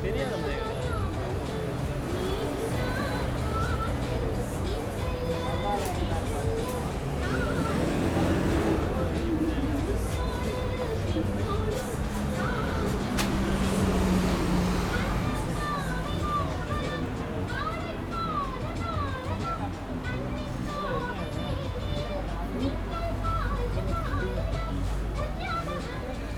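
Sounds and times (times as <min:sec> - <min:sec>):
Little India street ambience in Singapore: 0:00.0 - 0:26.3.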